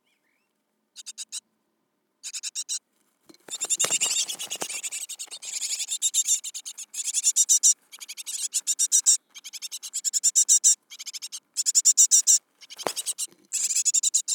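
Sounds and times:
Great Tit Parus major calling: 0:03.5 - 0:14.3.

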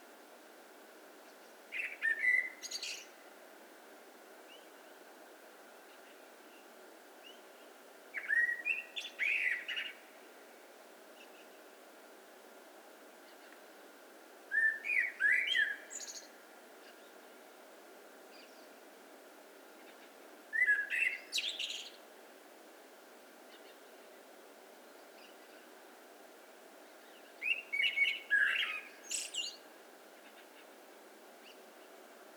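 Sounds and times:
common blackbird song: 0:01.4 - 0:03.2, 0:05.9 - 0:10.1, 0:14.5 - 0:17.2, 0:19.8 - 0:22.0, 0:26.9 - 0:30.7.

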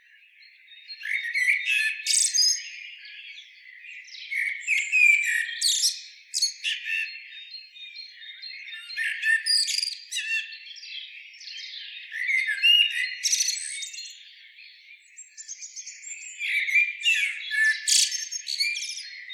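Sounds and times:
common blackbird singing: 0:00.0 - 0:19.3.

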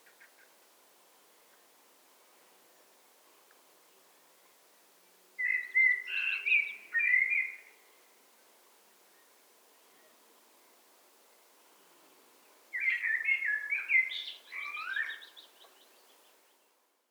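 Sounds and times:
Eurasian blackbird singing: 0:05.4 - 0:07.8, 0:12.8 - 0:16.3.

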